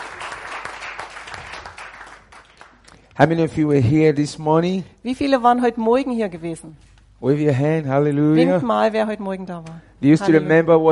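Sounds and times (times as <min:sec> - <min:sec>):
audience applauding: 0:00.0 - 0:02.9
speech: 0:03.2 - 0:10.8.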